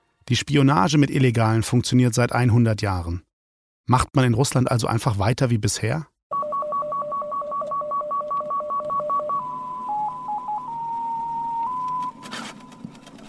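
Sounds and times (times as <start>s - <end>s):
speech: 0.3s - 3.3s, 3.9s - 6.1s
shortwave numbers station paired electronic beeps: 6.4s - 13.0s.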